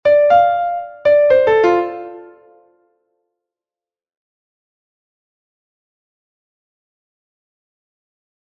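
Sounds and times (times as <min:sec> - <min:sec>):
musical phrase over Dm7 chord: 0:00.0 - 0:02.6.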